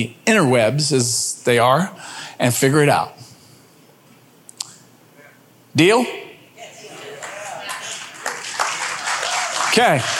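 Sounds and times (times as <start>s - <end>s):
speech: 0.0s - 3.2s, 5.8s - 6.2s, 9.8s - 10.1s
audience clapping: 6.8s - 10.1s.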